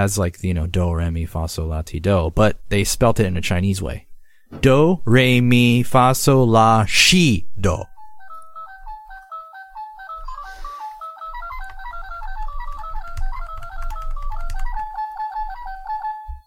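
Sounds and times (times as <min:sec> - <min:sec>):
speech: 0:00.0 - 0:07.9
solo played on one-octave toy piano: 0:08.0 - 0:16.4.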